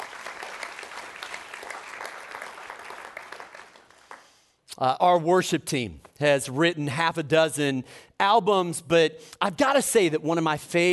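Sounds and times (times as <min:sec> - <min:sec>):
audience applause: 0:00.0 - 0:04.4
speech: 0:04.8 - 0:10.9.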